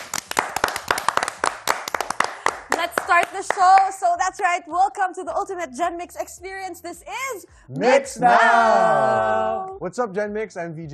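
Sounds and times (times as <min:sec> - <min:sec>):
audience clapping: 0:00.0 - 0:04.0
speech: 0:03.4 - 0:10.9.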